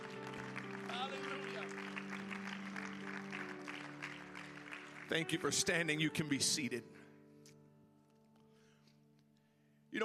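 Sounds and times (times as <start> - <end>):
audience clapping hands: 0.0 - 6.0
speech: 5.1 - 7.0.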